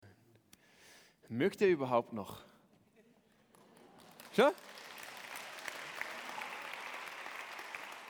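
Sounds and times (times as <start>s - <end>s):
speech: 1.3s - 2.5s, 4.4s - 4.8s
audience applauding: 3.5s - 8.0s.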